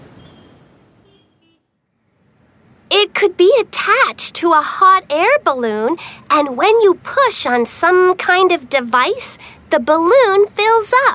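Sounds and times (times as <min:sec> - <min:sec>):
short car horn toots: 0:00.0 - 0:01.8
steady roar of road traffic: 0:00.0 - 0:11.1
speech: 0:03.0 - 0:11.1.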